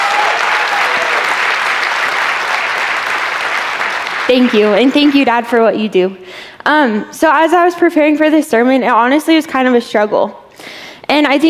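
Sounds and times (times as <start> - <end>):
audience applause: 0.0 - 5.3
speech: 4.3 - 10.4, 11.1 - 11.4.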